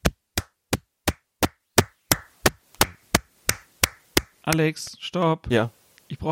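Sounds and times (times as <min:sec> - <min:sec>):
hand claps into the microphone: 0:00.4 - 0:04.7
speech: 0:04.5 - 0:06.3.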